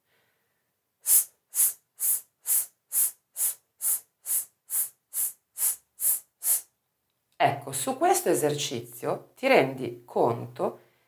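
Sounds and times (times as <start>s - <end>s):
intermittent pulsed sibilant S hissing: 1.0s - 6.7s
speech: 7.4s - 10.8s.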